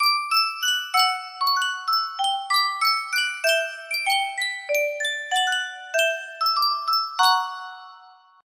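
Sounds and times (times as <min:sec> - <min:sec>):
Sankyo miniature music box: 0:00.0 - 0:08.4.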